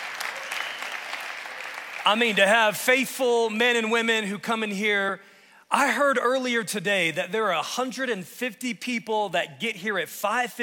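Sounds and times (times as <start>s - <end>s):
audience clapping: 0.0s - 2.6s
speech: 2.0s - 10.6s.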